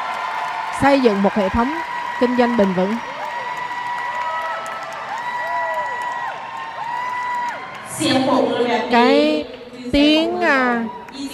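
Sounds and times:
audience applause: 0.0s - 8.2s
speech: 0.8s - 3.1s, 8.0s - 11.3s.

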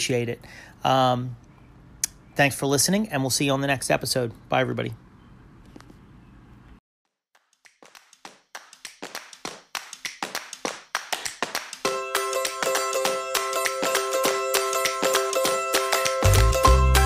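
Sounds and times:
speech: 0.0s - 1.4s, 2.4s - 5.0s
hand claps: 7.4s - 16.8s.

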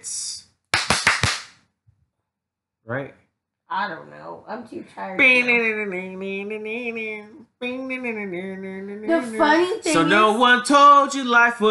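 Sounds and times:
hand claps: 0.7s - 1.6s
speech: 2.9s - 11.6s.

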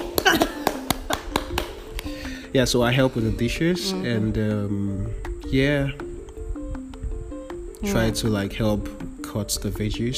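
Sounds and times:
one person clapping hands: 0.0s - 2.4s
speech: 2.5s - 6.1s, 7.8s - 10.1s.

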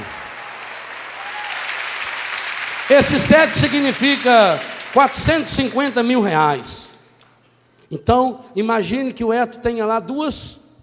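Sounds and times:
audience applause: 0.0s - 6.6s
speech: 2.9s - 6.9s, 7.9s - 10.6s.

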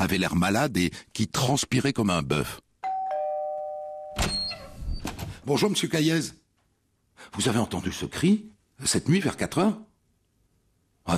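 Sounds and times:
speech: 0.0s - 2.6s, 5.5s - 6.4s, 7.2s - 9.9s
doorbell ringing: 2.8s - 4.6s.

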